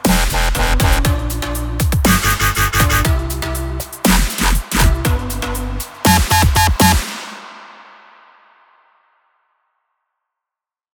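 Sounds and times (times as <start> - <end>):
Christmas beat music: 0.0 - 8.2.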